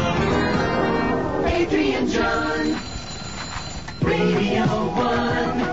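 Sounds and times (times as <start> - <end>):
jingle: 0.1 - 5.6.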